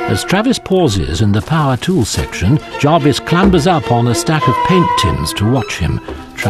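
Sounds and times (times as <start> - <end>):
speech: 0.1 - 6.4
head hitting a sign hanging from the ceiling: 3.3 - 4.3.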